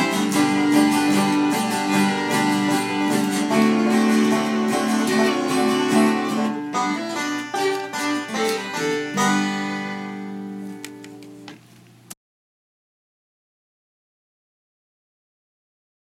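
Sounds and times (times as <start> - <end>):
blue banjo jam: 0.0 - 10.5.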